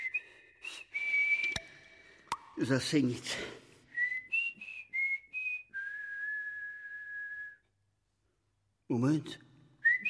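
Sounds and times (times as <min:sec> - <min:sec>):
melodic whistled family signal: 0:00.0 - 0:02.2, 0:03.9 - 0:07.7, 0:09.8 - 0:10.0
speech: 0:02.6 - 0:03.6, 0:08.9 - 0:09.4.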